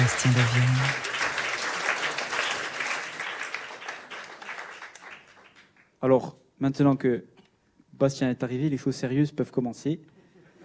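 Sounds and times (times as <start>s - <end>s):
audience applause: 0.0s - 5.7s
speech: 0.1s - 1.1s, 6.0s - 7.3s, 7.9s - 10.2s.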